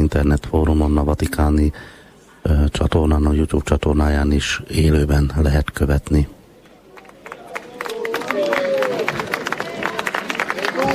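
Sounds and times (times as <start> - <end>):
speech: 0.1 - 6.4
crowd applause: 6.9 - 10.9.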